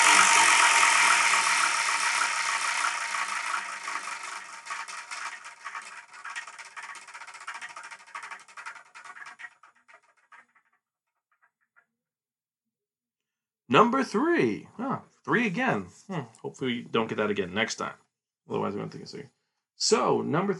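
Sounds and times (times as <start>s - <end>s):
wheel of fortune with ten slots spinning and clicking: 0.0s - 10.8s
speech: 13.7s - 20.5s.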